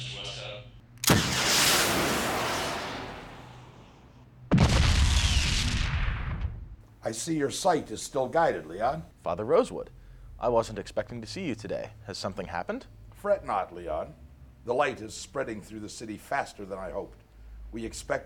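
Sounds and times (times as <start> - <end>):
gunshots from a Salamander 650 gun fired at a target: 1.0 - 3.4, 4.5 - 6.4
speech: 7.1 - 18.2.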